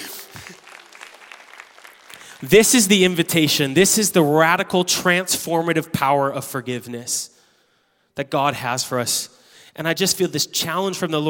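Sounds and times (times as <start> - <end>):
audience applause: 0.0 - 3.7
speech: 2.4 - 7.3, 8.2 - 11.2.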